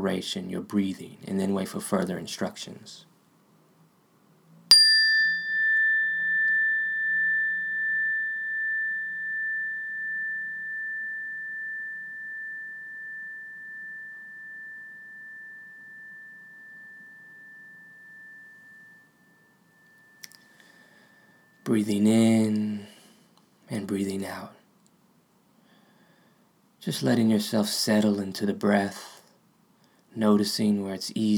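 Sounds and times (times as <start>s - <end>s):
speech: 0.0s - 3.1s, 21.7s - 22.7s, 23.7s - 24.6s, 26.8s - 29.1s, 30.1s - 31.3s
meditation bell ringing: 4.7s - 22.4s.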